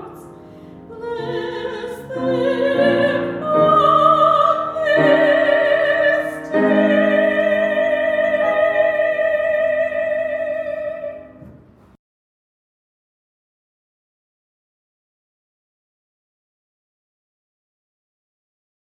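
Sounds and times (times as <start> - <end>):
soprano singing: 0.0 - 11.5.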